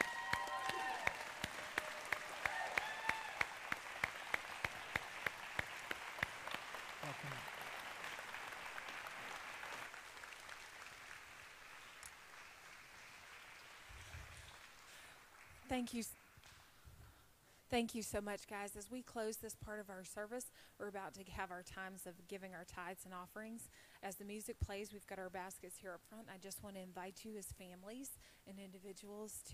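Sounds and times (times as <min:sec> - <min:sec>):
standing audience cheering: 0:00.0 - 0:11.1
standing audience applauding: 0:00.0 - 0:16.5
speech: 0:15.7 - 0:16.2, 0:17.7 - 0:29.5.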